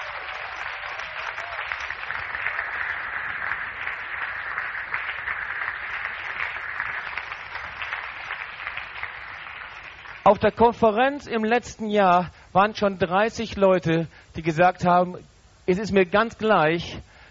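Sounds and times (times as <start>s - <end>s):
crowd applause: 0.0s - 10.6s
speech: 10.3s - 17.1s.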